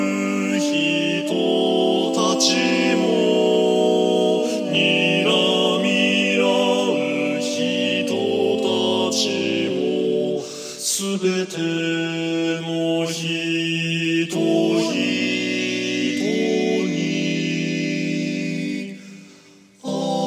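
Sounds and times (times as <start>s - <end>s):
baritone singing: 0.0s - 18.9s, 19.8s - 20.2s.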